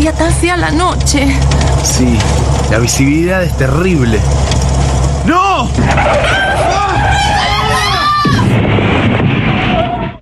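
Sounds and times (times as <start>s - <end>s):
car tires screeching: 0.0s - 10.2s
rumbling noise: 0.0s - 10.2s
speech: 0.1s - 4.6s, 5.2s - 7.5s
car crash impact: 5.7s - 10.2s
people screaming: 5.8s - 8.6s, 9.5s - 10.2s.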